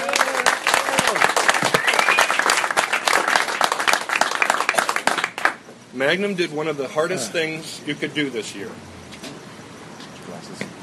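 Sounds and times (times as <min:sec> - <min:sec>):
whoops: 0:00.0 - 0:02.5
audience clapping at a Fetishman San Diego gathering: 0:00.0 - 0:05.6
speech: 0:06.0 - 0:09.0, 0:10.5 - 0:10.7.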